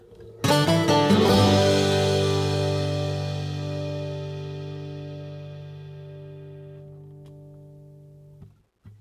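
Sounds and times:
outro music: 0:00.4 - 0:07.2.

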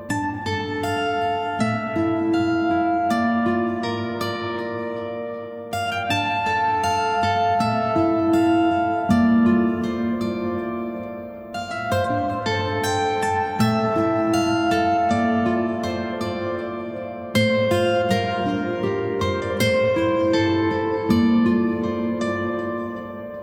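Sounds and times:
music: 0:00.0 - 0:23.4.

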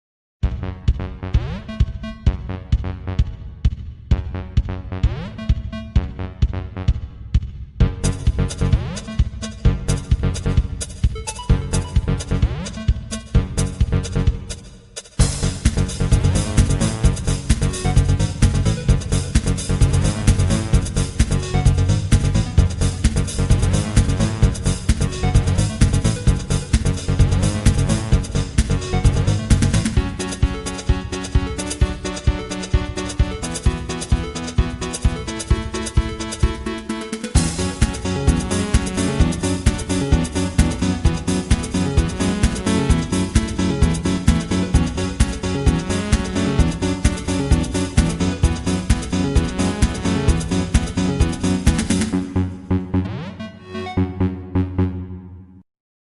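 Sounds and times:
game level music track: 0:00.4 - 0:55.6.

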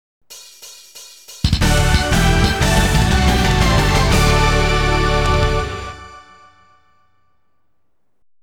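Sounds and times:
game over sound: 0:01.6 - 0:06.2.

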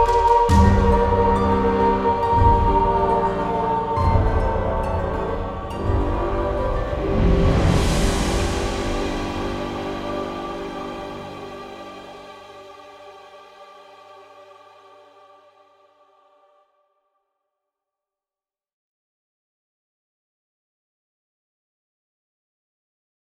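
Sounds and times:
romantic instrumental music: 0:00.0 - 0:15.6.

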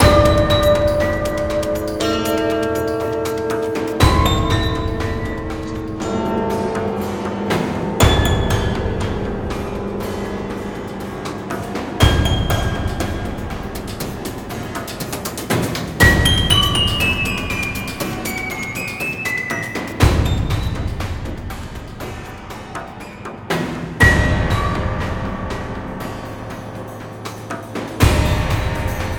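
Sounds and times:
intense music loop: 0:00.0 - 0:29.1.

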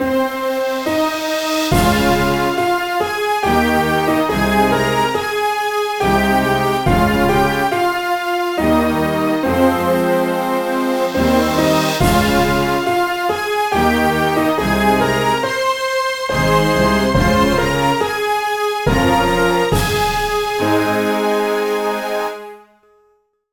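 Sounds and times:
orchestral background music: 0:00.0 - 0:22.8.

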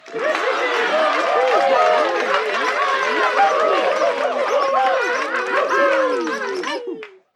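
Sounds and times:
applause: 0:00.0 - 0:07.3
laughter: 0:00.0 - 0:07.3.

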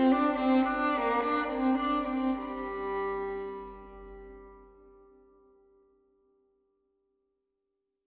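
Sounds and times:
violin: 0:00.0 - 0:05.4.

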